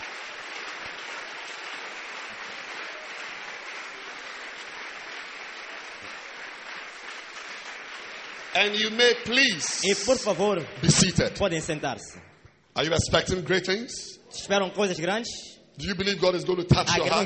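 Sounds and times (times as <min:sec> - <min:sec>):
audience clapping: 0:00.0 - 0:13.0
speech: 0:08.6 - 0:17.2.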